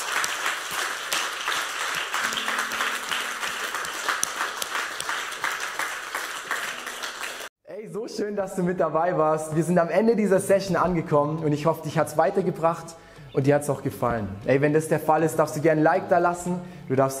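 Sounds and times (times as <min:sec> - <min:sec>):
crowd applause: 0:00.0 - 0:07.5
speech: 0:08.0 - 0:17.1.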